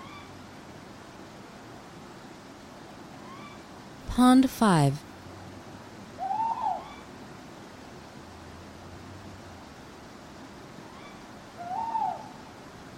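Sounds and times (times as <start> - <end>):
speech: 4.2 - 5.0
owl hooting: 6.2 - 7.0, 10.9 - 12.4.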